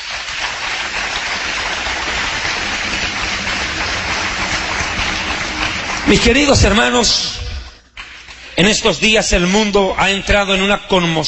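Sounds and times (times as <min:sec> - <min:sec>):
audience applauding: 0:00.0 - 0:08.8
speech: 0:06.1 - 0:07.4, 0:08.6 - 0:11.2.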